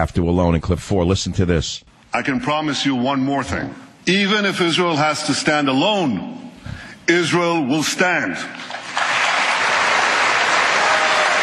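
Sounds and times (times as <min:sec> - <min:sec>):
speech: 0:00.0 - 0:06.4, 0:07.1 - 0:08.7
audience applause: 0:08.7 - 0:11.4.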